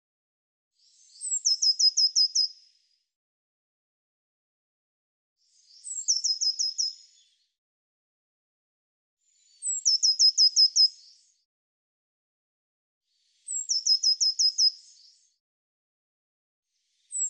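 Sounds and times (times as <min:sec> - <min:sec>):
bird singing sharp descending chirps: 0:00.8 - 0:02.7, 0:05.5 - 0:07.4, 0:09.3 - 0:11.3, 0:13.3 - 0:15.3, 0:16.9 - 0:17.2.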